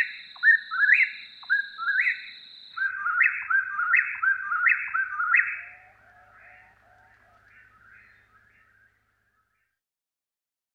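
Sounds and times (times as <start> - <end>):
Eastern whip-poor-will singing: 0.0 - 8.5.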